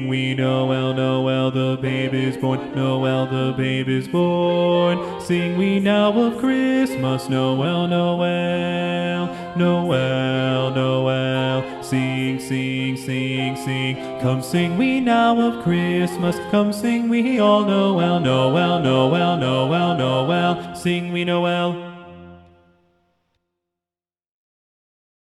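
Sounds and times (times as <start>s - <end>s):
SATB choir singing with bass voices predominant: 0.0s - 22.6s.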